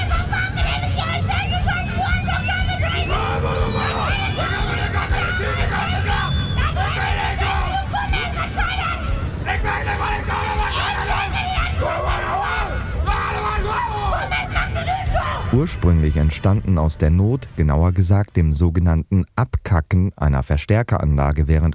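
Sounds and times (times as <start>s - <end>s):
crowd shouting at a dialect screaming festival: 0.2s - 15.6s
speech: 15.6s - 21.7s.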